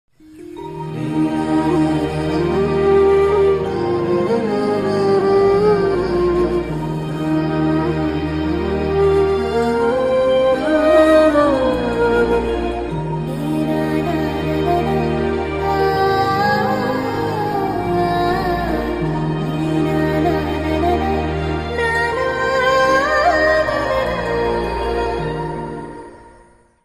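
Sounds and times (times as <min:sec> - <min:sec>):
sad background music: 0:00.2 - 0:26.8.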